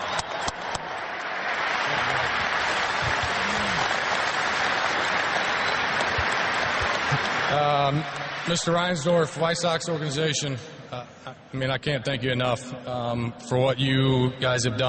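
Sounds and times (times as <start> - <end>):
large audience applause: 0.0 - 9.1
speech: 7.5 - 14.8.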